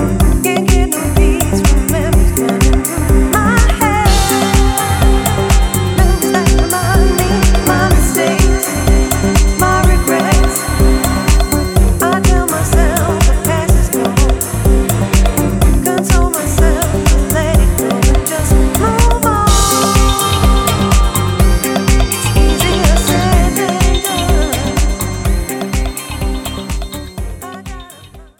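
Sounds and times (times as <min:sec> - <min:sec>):
house music: 0:00.0 - 0:28.3.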